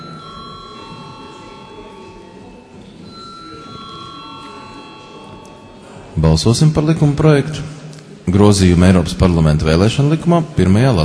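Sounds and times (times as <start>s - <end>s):
parliament voting bell ringing: 0.0s - 6.2s
low murmur of the parliament chamber: 0.0s - 11.0s
speech: 6.2s - 11.0s.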